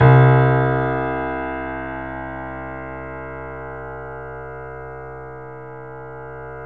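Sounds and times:
Yamaha C7 piano: 0.0 - 6.6.

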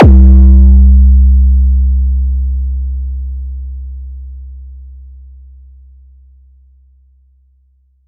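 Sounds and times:
booming kick drums: 0.0 - 2.5.

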